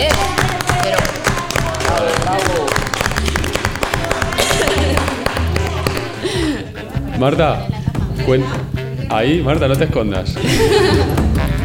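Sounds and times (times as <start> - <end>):
applause: 0.0 - 6.2
speech: 7.2 - 11.2.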